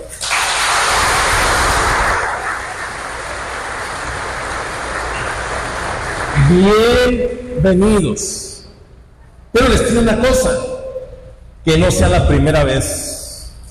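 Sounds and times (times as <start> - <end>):
audience applause: 0.1 - 6.6
speech: 6.5 - 8.4, 9.6 - 10.7, 11.6 - 13.1.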